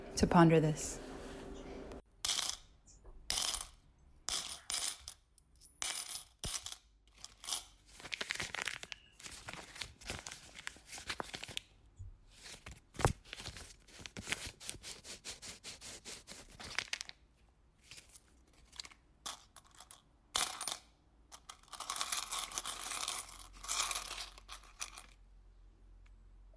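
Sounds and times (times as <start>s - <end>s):
speech: 0.2s - 1.0s
coins clinking and dropping: 2.2s - 2.7s, 3.3s - 7.8s, 19.3s - 25.1s
crinkling and rustling: 7.1s - 15.1s, 16.2s - 17.2s, 17.8s - 19.1s.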